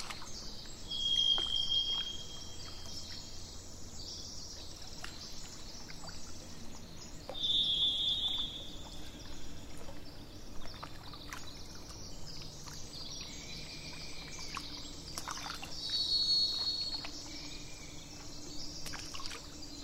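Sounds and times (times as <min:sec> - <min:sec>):
faint chirps: 0:00.0 - 0:19.8
low background noise: 0:00.0 - 0:19.8
thrush whistling: 0:00.9 - 0:02.7, 0:07.3 - 0:08.9.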